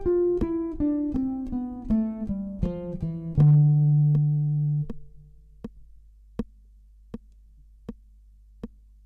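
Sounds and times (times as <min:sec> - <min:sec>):
guitar playing a Dorian scale in eighth notes: 0:00.0 - 0:05.9.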